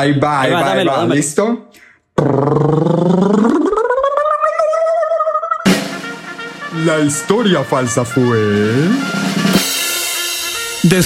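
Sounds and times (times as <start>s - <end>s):
speech: 0.0s - 4.0s, 6.8s - 9.2s, 10.8s - 11.0s
voice imitating a drum roll: 2.2s - 7.2s.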